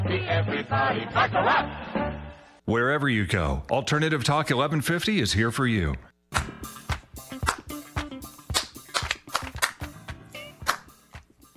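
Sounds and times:
speech: 0.2 - 2.0, 2.7 - 6.5
hands clapping: 6.3 - 11.5.

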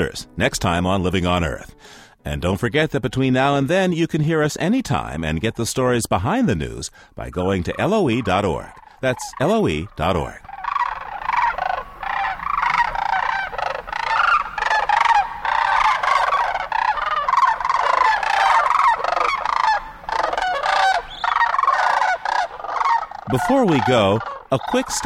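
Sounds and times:
speech: 0.0 - 10.5, 23.3 - 25.0
flock of sandhill cranes calling: 7.6 - 25.0.

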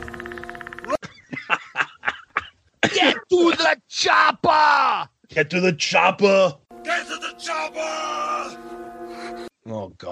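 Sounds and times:
buzzing synth drone: 0.0 - 1.0, 6.7 - 9.5
raspy croaking calls: 0.0 - 1.0
speech: 2.9 - 8.2.

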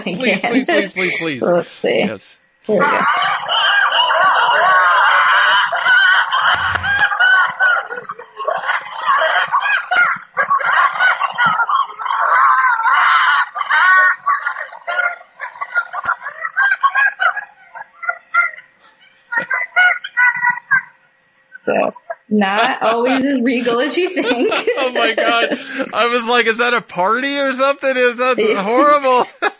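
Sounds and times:
laughter: 0.0 - 1.5, 2.7 - 21.0, 21.6 - 29.5
speech: 0.0 - 3.7, 22.4 - 29.3
red wolf family howling, adults and pups: 2.8 - 17.4.

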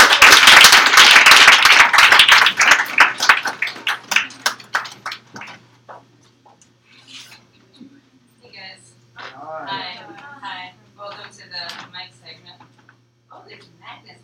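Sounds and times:
audience applause welcoming a performer back to the mic at a live open-mic segment: 0.0 - 5.6.

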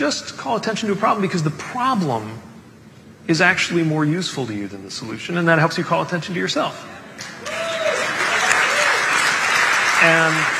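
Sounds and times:
speech: 0.0 - 2.5, 3.2 - 7.3, 10.0 - 10.5
audience applause: 7.2 - 10.5.

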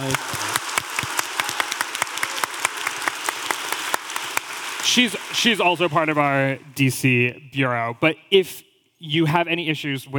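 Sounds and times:
speech: 0.0 - 0.5, 4.9 - 10.1
audience applause: 0.0 - 6.8.

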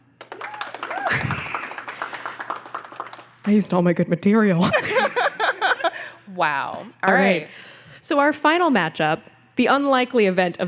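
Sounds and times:
audience clapping to vote: 0.0 - 3.7
cheers and whoops: 0.2 - 1.7
laughter: 0.9 - 2.4, 4.6 - 6.2
speech: 3.4 - 5.2, 6.3 - 10.6.

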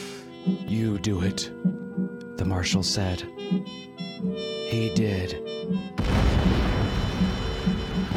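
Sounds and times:
speech: 0.4 - 1.8, 2.4 - 6.6
building demolition blast: 6.0 - 8.1.

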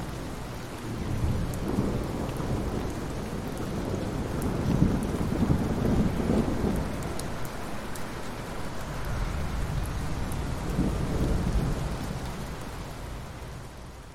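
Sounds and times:
steady rain at night: 0.0 - 14.1
thunder rumbling at night: 0.8 - 7.1, 9.1 - 12.2.

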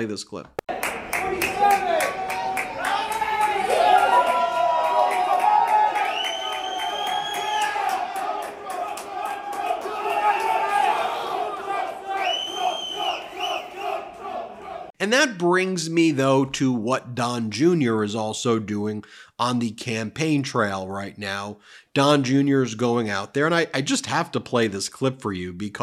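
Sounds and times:
speech: 0.0 - 2.2, 15.0 - 25.8
small crowd cheering in the hall of 40 Wall Street: 0.7 - 15.0.

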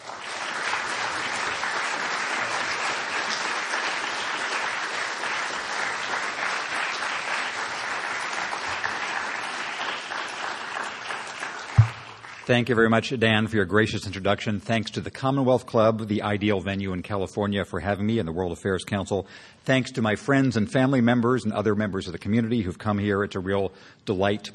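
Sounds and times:
audience applause at a Commonwealth Club event welcoming speaker James Fallows: 0.0 - 12.5
speech: 12.5 - 24.5.

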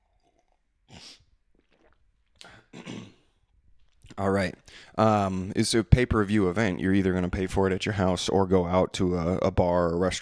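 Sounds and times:
slurping a hot drink: 0.0 - 2.6
throat clearing: 2.4 - 3.4
speech: 4.2 - 10.2.

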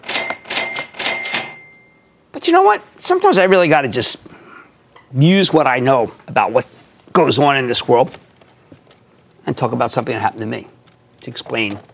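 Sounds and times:
cash register ringing up: 0.0 - 2.2
speech: 2.3 - 4.4, 5.1 - 8.3, 9.5 - 11.9.

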